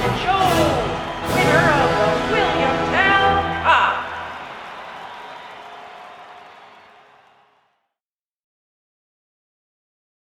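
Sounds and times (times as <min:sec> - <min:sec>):
vocals: 0:00.0 - 0:04.5.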